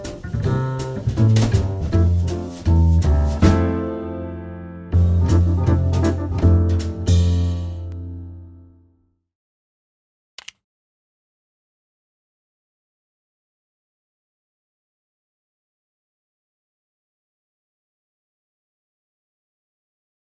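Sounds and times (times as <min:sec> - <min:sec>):
jazz backing track chord progression: 0:00.0 - 0:08.6.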